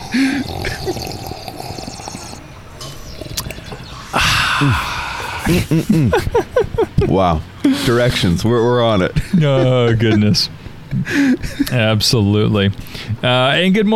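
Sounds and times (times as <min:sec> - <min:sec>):
sipping coffee from a mug: 0:00.0 - 0:05.5
speech: 0:00.1 - 0:01.1, 0:04.6 - 0:06.4, 0:07.1 - 0:13.9
laughter: 0:00.1 - 0:01.3, 0:04.2 - 0:11.8.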